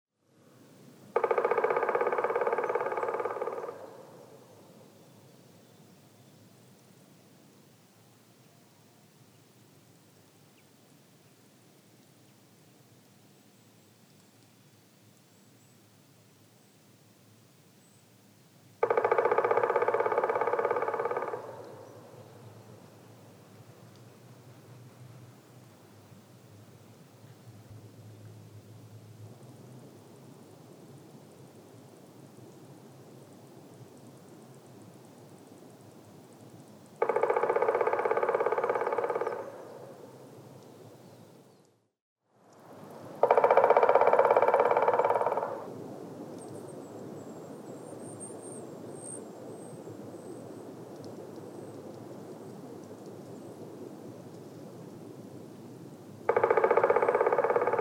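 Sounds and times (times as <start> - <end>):
black woodpecker calling: 1.2 - 4.6, 18.8 - 22.3, 37.0 - 40.0, 43.2 - 45.7, 56.3 - 57.8.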